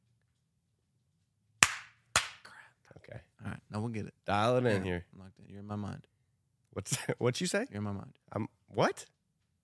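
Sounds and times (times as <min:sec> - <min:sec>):
hand clap: 0:01.6 - 0:02.5
speech: 0:03.8 - 0:06.1, 0:06.8 - 0:09.2.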